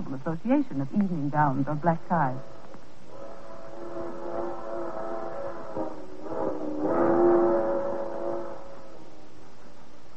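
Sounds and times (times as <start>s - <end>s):
speech: 0.1s - 2.6s
low rumbling background: 2.2s - 10.1s
night freight train locomotive whistle: 2.4s - 9.5s.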